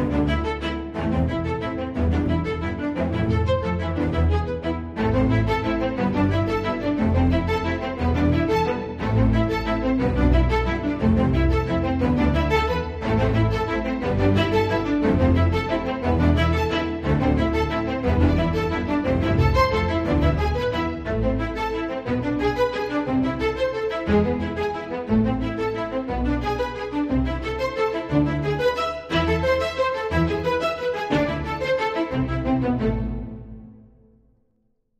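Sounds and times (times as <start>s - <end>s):
dramatic strings: 0.0s - 34.2s.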